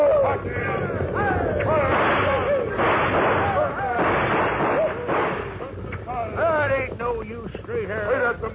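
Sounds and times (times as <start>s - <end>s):
wordless shouting voices: 0.0s - 5.7s
continuous rumbling: 0.0s - 7.8s
gunfire: 1.7s - 5.8s.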